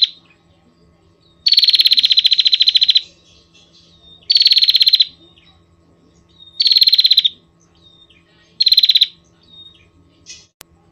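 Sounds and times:
Prinia rattling trills: 0.0s - 10.6s.

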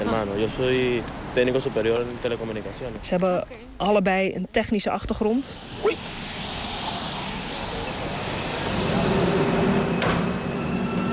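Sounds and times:
speech: 0.1s - 6.2s
thin whining hum of metro train: 5.4s - 11.1s
metro train ride rumble: 7.4s - 11.1s.

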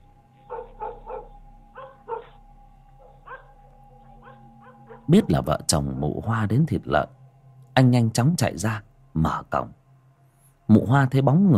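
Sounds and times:
low steady hum: 0.0s - 11.5s
yellow dog barking loudly at night arrivals: 0.5s - 2.3s, 3.2s - 3.5s
speech: 5.1s - 7.2s, 7.8s - 9.8s, 10.7s - 11.5s.

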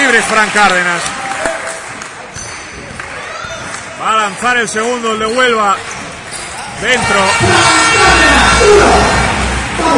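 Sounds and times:
basketball crowd clapping for a player after a missed free throw: 0.0s - 4.5s
speech: 0.1s - 1.2s, 4.0s - 5.9s, 6.8s - 9.2s.

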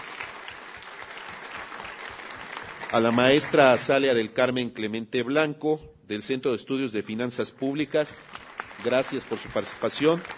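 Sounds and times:
audience applauding a speaker at a public finance forum: 0.0s - 4.0s, 8.2s - 10.3s
speech: 2.9s - 10.3s.

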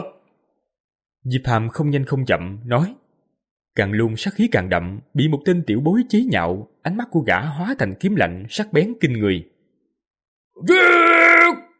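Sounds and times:
speech: 1.2s - 3.0s, 3.8s - 9.5s, 10.6s - 11.2s
man roaring angrily: 10.6s - 11.7s.

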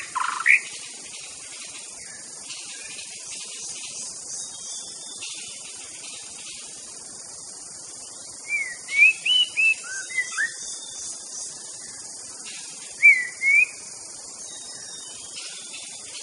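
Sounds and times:
wild white-rumped shama singing in forest: 8.4s - 10.8s, 13.0s - 13.8s.

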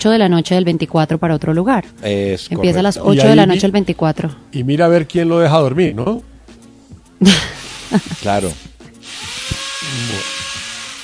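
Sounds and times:
speech: 0.0s - 6.3s, 7.2s - 8.7s
power drill running: 7.6s - 11.0s.

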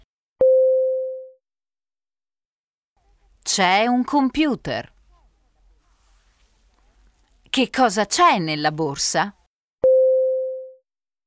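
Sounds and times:
speech: 3.4s - 4.9s, 7.6s - 9.4s
single mid-pitched telephone tone: 9.8s - 10.8s.

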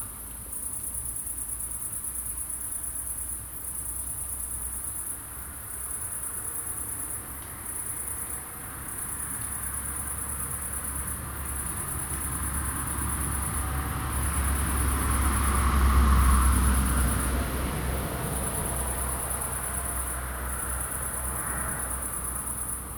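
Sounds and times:
crickets chirping at night in Aveize, France: 0.0s - 22.9s.

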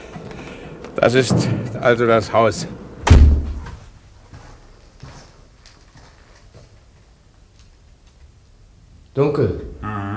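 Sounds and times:
speech: 1.0s - 2.8s, 9.2s - 10.0s
heavy door swinging shut: 3.0s - 3.8s.

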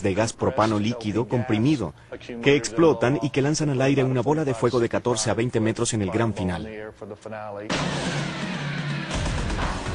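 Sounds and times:
speech: 0.0s - 8.5s
car engine revving during a Hollywood-style car chase stunt show: 7.7s - 9.9s.

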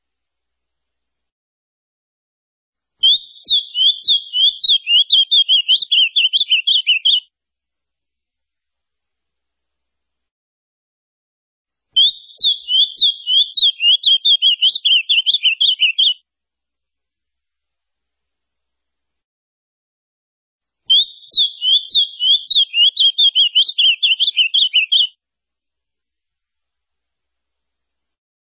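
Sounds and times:
ultramarine grosbeak song: 3.0s - 7.2s, 12.0s - 16.2s, 20.9s - 25.1s.

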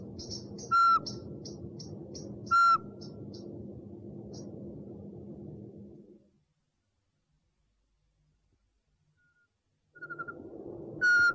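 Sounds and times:
owl hooting: 0.0s - 3.2s, 10.0s - 11.3s.

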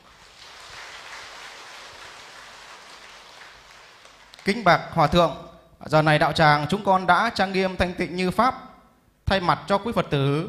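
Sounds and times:
audience at a Buddhist retreat applauding: 0.0s - 4.6s
speech: 4.4s - 8.7s, 9.3s - 10.4s.

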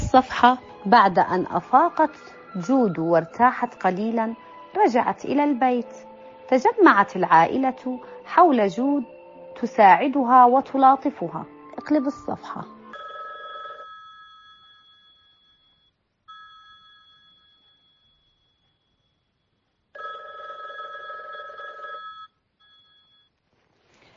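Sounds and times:
speech: 0.1s - 12.8s
telephone ringing: 12.9s - 19.3s, 20.0s - 23.4s.

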